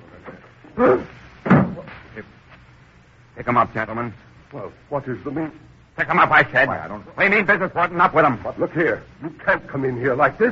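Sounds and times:
speech: 0.8s - 1.1s, 3.4s - 10.5s
wooden door being opened: 1.4s - 1.8s.

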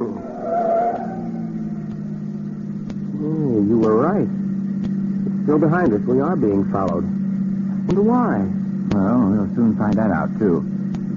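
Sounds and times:
tires squealing through a sharp turn: 0.0s - 3.2s
car engine roaring: 0.0s - 11.1s
speech: 5.5s - 7.2s, 7.9s - 10.7s.

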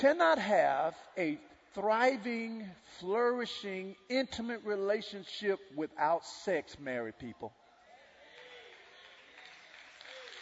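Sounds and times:
speech: 0.0s - 7.6s
audience clapping: 8.3s - 10.4s.

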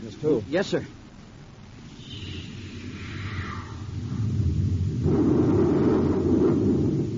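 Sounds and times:
space torpedo being fired past a ship: 2.8s - 7.1s.

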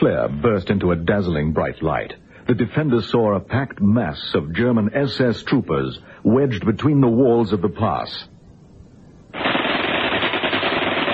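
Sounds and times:
speech: 0.0s - 8.3s
machine gun fire: 9.4s - 11.1s.

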